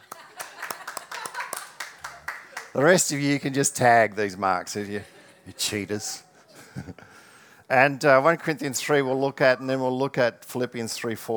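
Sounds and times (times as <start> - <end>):
audience clapping: 0.0 - 4.4
laughter: 0.0 - 7.2
speech: 2.8 - 7.0, 7.7 - 11.3.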